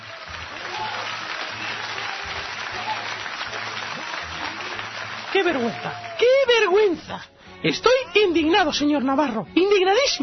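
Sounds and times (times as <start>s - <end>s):
audience applause: 0.0s - 6.7s
speech: 5.4s - 10.2s.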